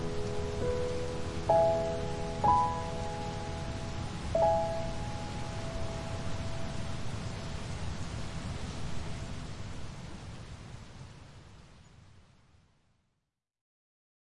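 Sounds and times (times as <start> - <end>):
piano: 0.0 - 9.8
rain: 0.0 - 13.0.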